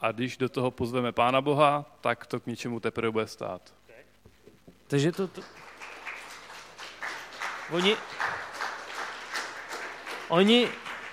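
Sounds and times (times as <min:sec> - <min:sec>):
speech: 0:00.0 - 0:03.8, 0:04.9 - 0:05.7, 0:07.7 - 0:08.3, 0:10.3 - 0:10.9
church audience clapping: 0:05.0 - 0:11.1.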